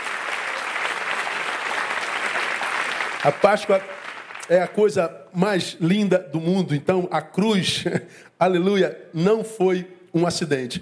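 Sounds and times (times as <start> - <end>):
audience applause: 0.0 - 4.9
speech: 3.2 - 10.8.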